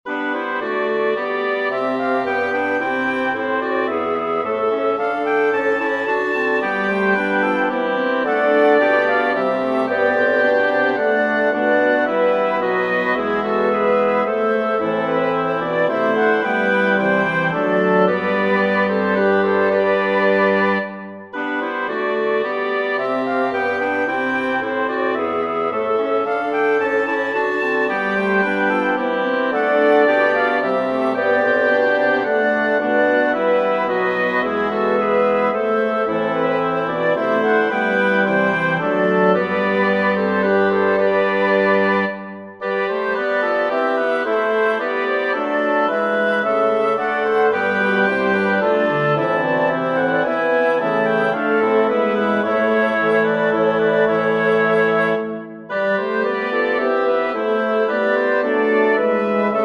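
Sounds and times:
wind sextet playing an intrada: 0.0 - 59.6.

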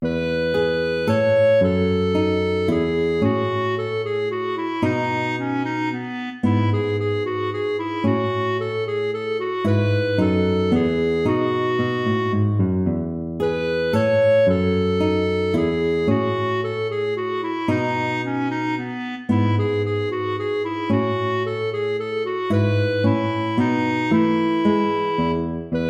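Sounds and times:
minuet in a major key: 0.0 - 25.8.

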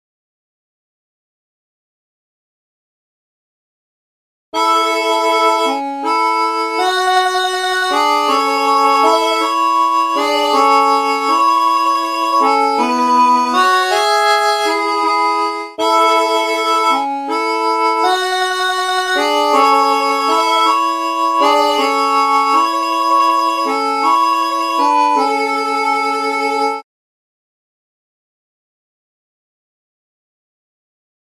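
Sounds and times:
mandolin: 4.6 - 26.7
harmonica: 4.6 - 26.8.

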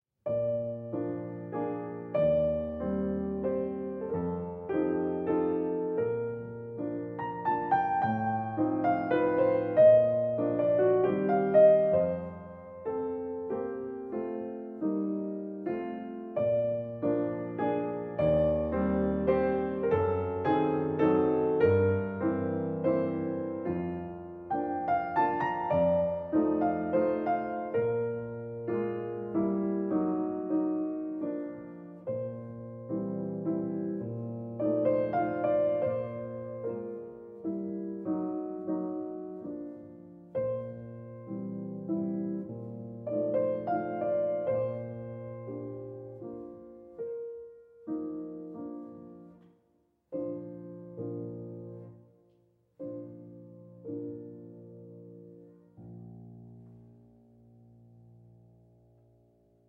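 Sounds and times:
cantabile music in a major key: 0.3 - 58.4.

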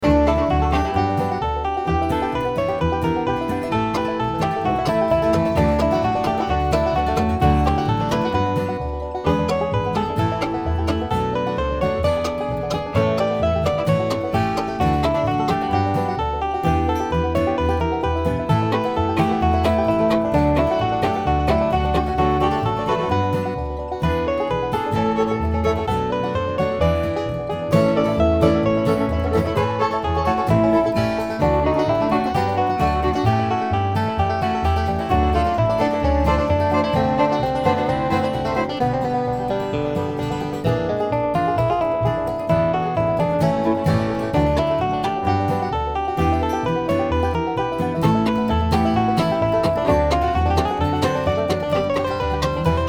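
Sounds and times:
bluegrass music: 0.0 - 52.8.

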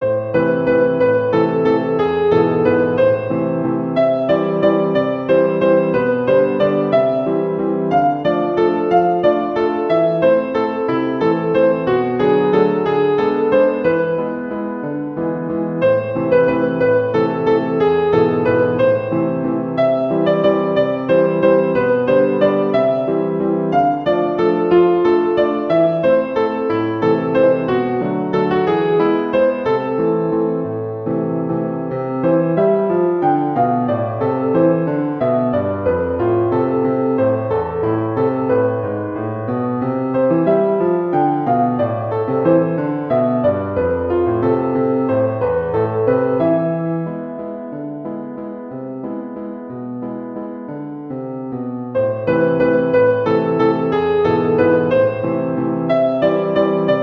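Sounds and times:
waltz music: 0.0 - 50.8, 51.5 - 57.0.

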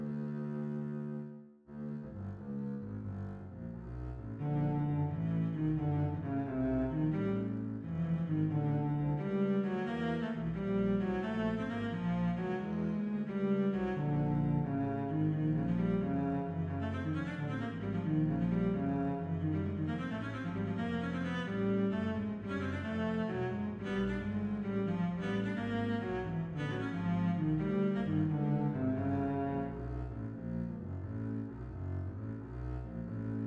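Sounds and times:
double bass playing an adagietto: 0.0 - 33.4.

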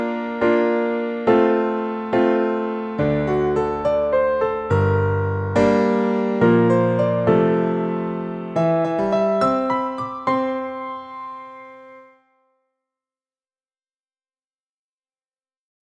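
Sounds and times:
music piece in C major: 0.0 - 12.6.

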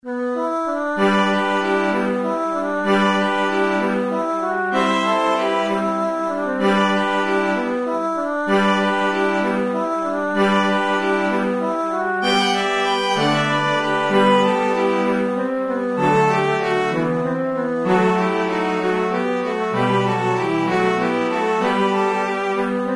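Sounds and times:
concerto for flute and string orchestra: 0.2 - 22.9.

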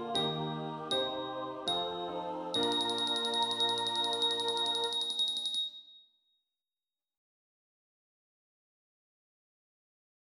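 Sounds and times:
Christmas song: 0.0 - 5.6.

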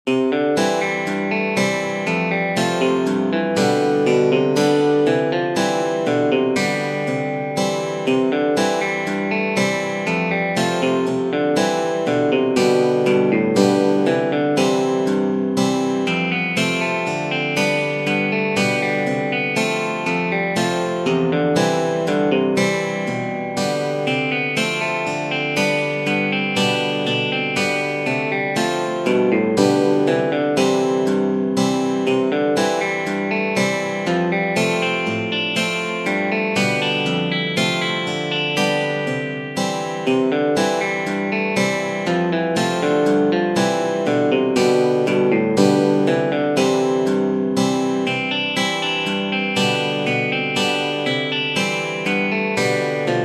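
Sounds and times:
western country music: 0.1 - 53.2.

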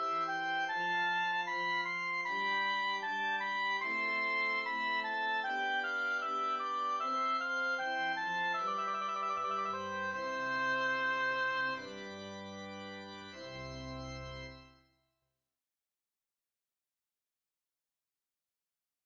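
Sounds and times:
adagio transcribed for solo organ: 0.0 - 14.9.

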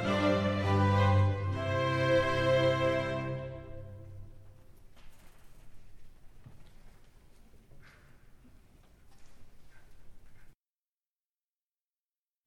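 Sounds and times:
concert choir singing: 0.0 - 4.2.

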